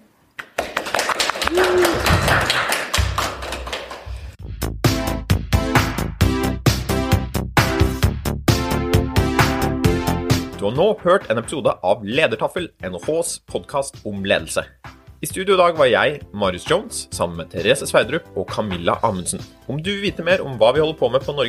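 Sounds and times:
audience applause: 0:00.4 - 0:04.4
rhythmic tuneful music: 0:01.5 - 0:21.4
speech: 0:10.7 - 0:21.4.

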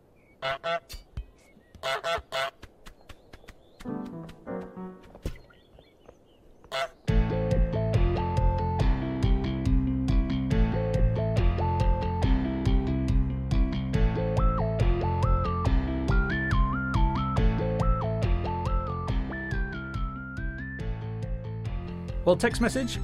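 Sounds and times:
goose honking: 0:00.4 - 0:00.9, 0:01.8 - 0:02.6, 0:06.7 - 0:07.0
speech: 0:00.4 - 0:01.0, 0:22.3 - 0:23.0
music with a beat: 0:07.1 - 0:20.9.

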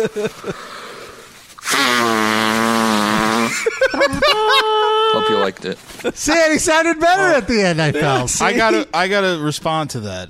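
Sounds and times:
laughter: 0:00.0 - 0:00.7, 0:03.4 - 0:06.6, 0:07.4 - 0:09.0
speech: 0:00.0 - 0:00.9, 0:03.6 - 0:10.2
person blowing their nose: 0:00.0 - 0:03.9.

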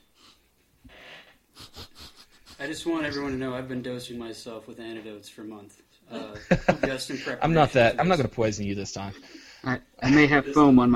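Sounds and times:
person sniffing a beer's aroma: 0:00.2 - 0:02.6, 0:09.2 - 0:09.7
speech: 0:02.6 - 0:10.9
laughter: 0:06.2 - 0:07.5.

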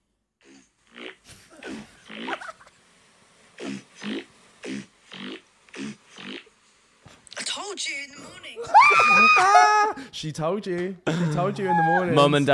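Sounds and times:
fart: 0:00.4 - 0:02.7, 0:03.6 - 0:06.5
speech: 0:07.8 - 0:12.5.

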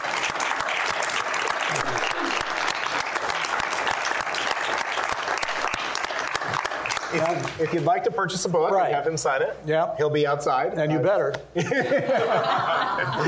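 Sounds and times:
audience applause: 0:00.0 - 0:07.9
laughter: 0:01.6 - 0:02.8, 0:11.6 - 0:13.2
speech: 0:07.1 - 0:13.2.

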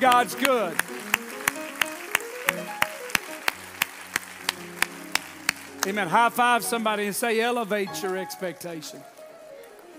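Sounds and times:
speech: 0:00.0 - 0:01.0, 0:05.8 - 0:09.1
audience clapping hands: 0:00.0 - 0:06.8.

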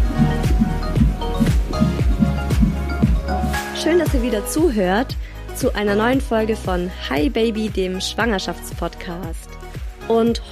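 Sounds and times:
fetal heartbeat on an ultrasound Doppler: 0:00.0 - 0:03.4
speech: 0:03.9 - 0:10.5.

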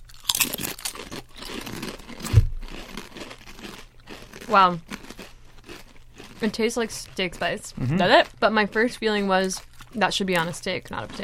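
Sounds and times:
potato chips being bitten and chewed: 0:00.0 - 0:11.2
heavy thump: 0:02.2 - 0:02.7
speech: 0:04.5 - 0:04.9, 0:06.4 - 0:11.2.

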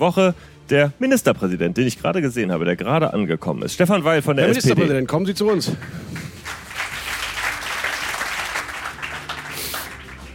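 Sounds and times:
speech: 0:00.0 - 0:06.3
audience applause in a hall: 0:05.5 - 0:10.3.

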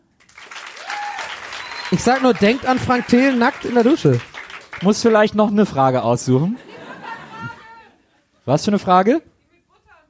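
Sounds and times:
audience applause: 0:00.0 - 0:05.4
whistle: 0:01.5 - 0:02.0
speech: 0:01.9 - 0:06.7, 0:08.5 - 0:09.3
laughter: 0:06.4 - 0:08.4.

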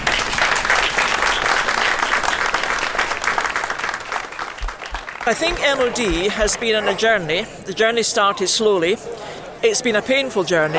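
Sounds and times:
audience applause: 0:00.0 - 0:06.6
speech: 0:05.3 - 0:10.7.

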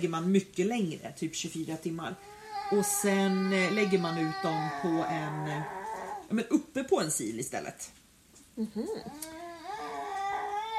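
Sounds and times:
speech: 0:00.0 - 0:08.0, 0:08.6 - 0:09.4
baby babbling and fussing: 0:02.1 - 0:06.3, 0:08.6 - 0:10.7.

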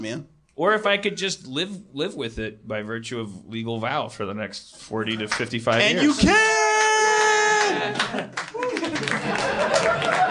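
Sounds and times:
speech: 0:00.0 - 0:06.6
polite audience clapping: 0:05.2 - 0:05.9, 0:06.7 - 0:10.3
laughter: 0:07.6 - 0:10.3.

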